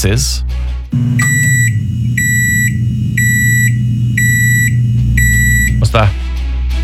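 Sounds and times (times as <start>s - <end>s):
speech: 0.0s - 1.6s
microwave oven beeping: 1.0s - 5.9s.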